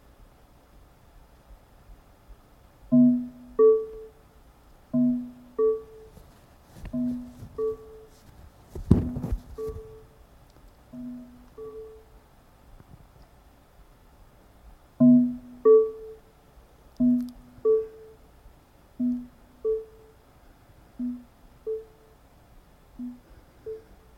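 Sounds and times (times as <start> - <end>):
percussive tones increasing in distance: 2.9 - 3.9, 5.0 - 6.2, 6.9 - 8.2, 11.0 - 12.0, 15.0 - 16.1, 17.0 - 18.1, 19.0 - 20.0, 21.0 - 21.9, 23.0 - 23.8.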